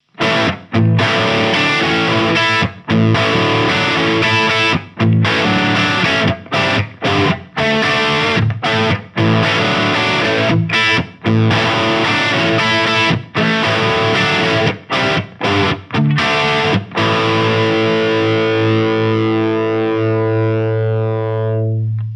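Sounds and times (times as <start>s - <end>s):
Les Paul crunch through Orange Rockerverb 50H MKIII amplifier: 0.0s - 22.1s.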